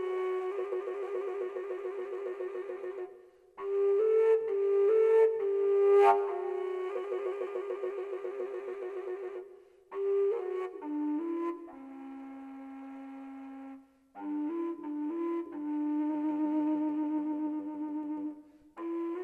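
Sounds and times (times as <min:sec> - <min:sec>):
dark fujara overtone flute in G: 0:00.0 - 0:19.2.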